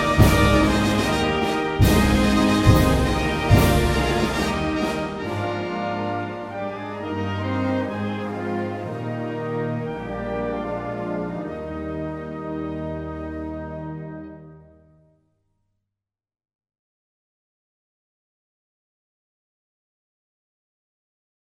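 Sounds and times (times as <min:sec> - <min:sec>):
national anthem: 0:00.0 - 0:14.4.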